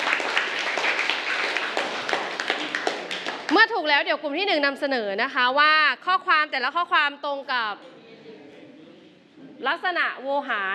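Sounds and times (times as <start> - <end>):
students clapping in classroom: 0.0 - 3.8
speech: 3.6 - 7.9, 9.6 - 10.7.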